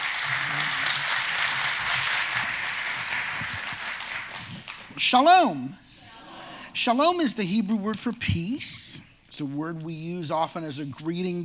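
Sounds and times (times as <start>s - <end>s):
audience applause welcoming a speaker: 0.0s - 4.9s
speech: 5.0s - 5.8s, 6.8s - 11.4s.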